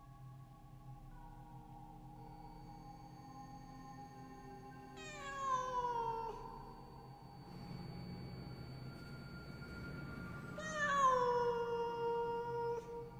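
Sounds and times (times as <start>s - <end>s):
large black cat yowling in a bush behind a hibiscus hedge: 5.0s - 6.5s, 10.6s - 13.0s.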